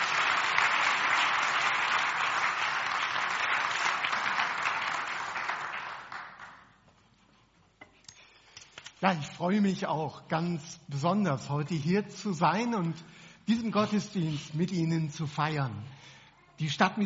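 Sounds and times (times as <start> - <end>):
strong audience applause welcoming a speaker: 0.0 - 6.8
speech: 9.0 - 17.0.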